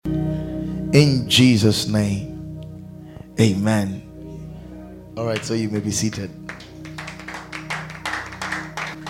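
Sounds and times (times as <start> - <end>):
speech: 0.9 - 2.3, 3.4 - 4.0, 5.2 - 6.4
scattered clapping: 5.4 - 9.0.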